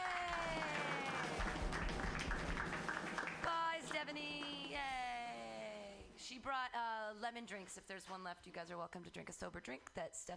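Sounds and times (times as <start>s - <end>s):
group clapping wildly: 0.0s - 5.0s
speech: 4.0s - 5.1s, 6.3s - 10.3s.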